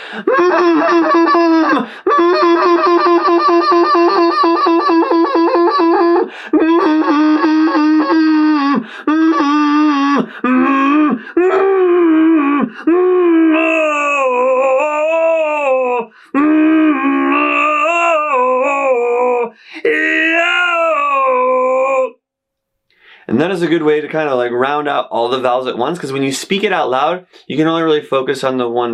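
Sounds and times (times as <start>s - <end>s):
speech: 0.1s - 7.8s, 23.4s - 28.9s
person humming in the throat: 0.2s - 22.2s.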